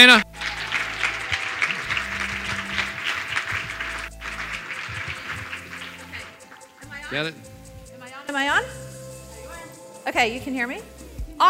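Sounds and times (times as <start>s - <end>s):
speech: 0.0s - 0.3s, 7.1s - 7.5s, 8.3s - 8.8s, 10.0s - 11.4s
audience applause: 0.0s - 7.0s.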